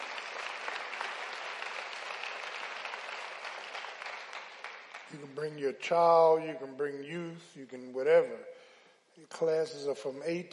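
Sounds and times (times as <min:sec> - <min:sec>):
hand clapping applause: 0:00.0 - 0:05.7
speech: 0:05.1 - 0:08.6, 0:09.2 - 0:10.5.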